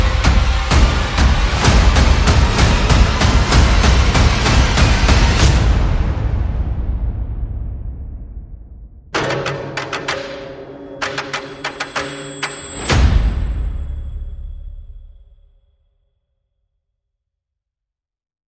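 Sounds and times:
percussion: 0:00.0 - 0:08.2, 0:09.2 - 0:15.6
sound effects: 0:09.2 - 0:14.5.

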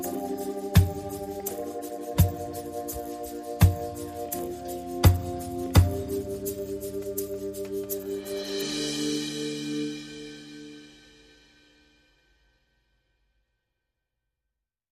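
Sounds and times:
synth pads: 0:00.0 - 0:11.4
percussion: 0:00.0 - 0:12.4.

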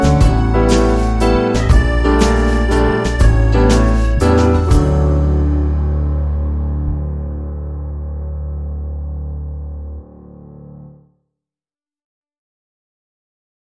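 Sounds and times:
waltz music: 0:00.0 - 0:09.9.

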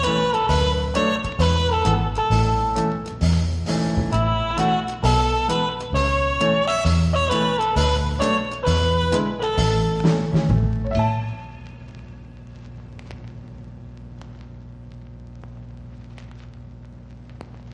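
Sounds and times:
instrumental music: 0:00.0 - 0:13.4.

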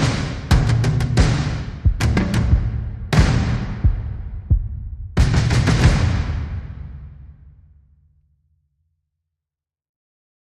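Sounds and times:
drums: 0:00.0 - 0:07.7.

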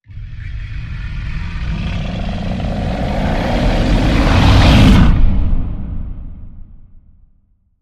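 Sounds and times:
rising yeti growl: 0:00.0 - 0:05.9.

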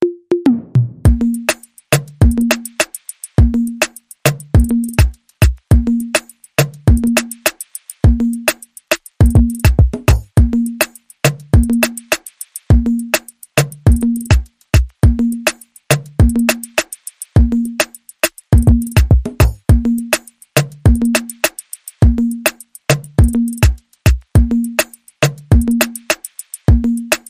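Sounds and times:
music beat: 0:00.0 - 0:27.2.

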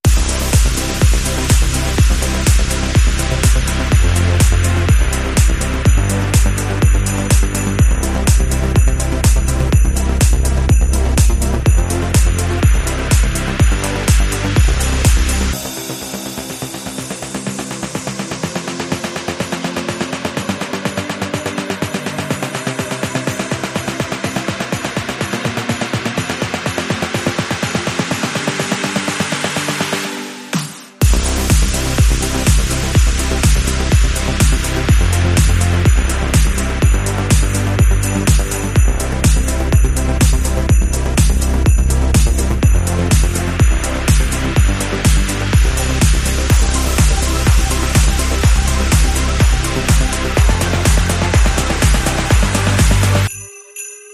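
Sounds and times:
big banger beats rhythm: 0:00.0 - 0:53.3.

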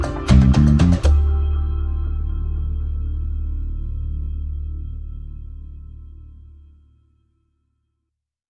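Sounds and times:
percussion: 0:00.0 - 0:05.7.

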